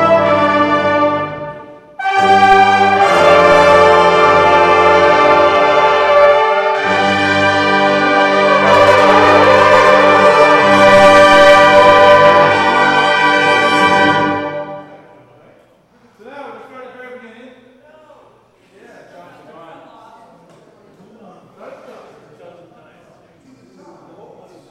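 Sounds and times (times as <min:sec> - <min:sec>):
brass melody: 0:00.0 - 0:15.2.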